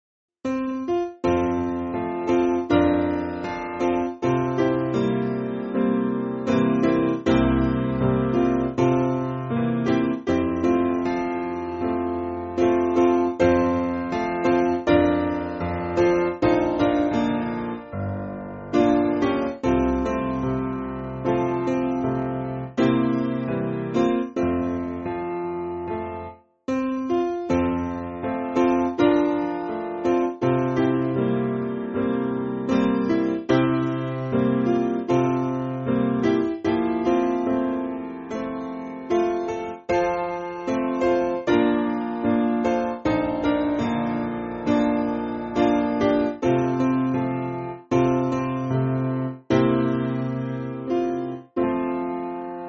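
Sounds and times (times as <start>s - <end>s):
church piano music: 0.5s - 52.6s.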